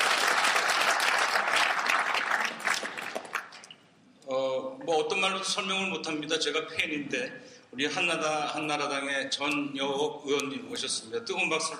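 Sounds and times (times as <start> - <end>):
crowd applauding: 0.0 - 3.7
speech: 4.9 - 11.7.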